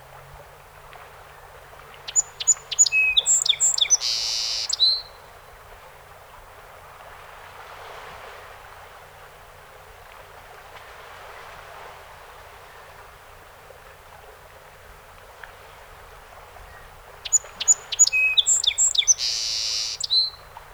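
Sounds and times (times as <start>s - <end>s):
song sparrow song: 1.9s - 5.3s, 16.6s - 20.6s.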